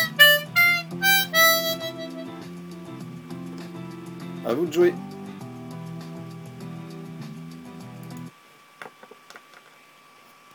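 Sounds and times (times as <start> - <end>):
musical phrases in E Phrygian: 0.0 - 3.0.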